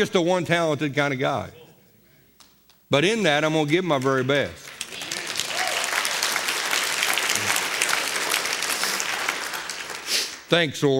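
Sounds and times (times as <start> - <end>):
speech: 0.0 - 1.6, 2.9 - 4.7, 10.5 - 10.9
audience clapping: 3.4 - 10.6.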